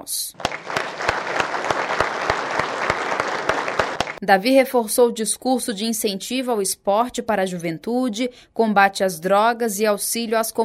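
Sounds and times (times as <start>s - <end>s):
speech: 0.0s - 0.7s, 4.2s - 10.6s
applause in homage to Covid-19 victims in Manaus: 0.3s - 4.2s.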